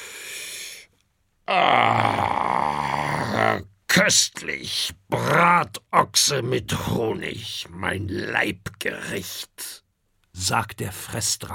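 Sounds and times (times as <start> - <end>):
speech: 1.5 - 2.4, 4.0 - 9.8, 10.4 - 11.5
mighty loud gravelly belch: 1.5 - 3.6.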